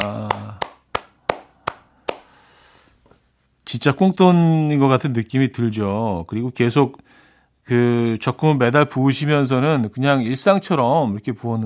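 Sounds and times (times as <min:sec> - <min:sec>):
speech: 0:00.0 - 0:00.4, 0:03.7 - 0:11.6
hand clapping: 0:00.0 - 0:02.4.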